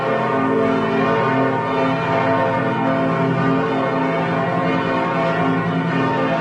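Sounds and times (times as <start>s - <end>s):
bells of five churches in Lübeck ringing together: 0.0s - 6.3s.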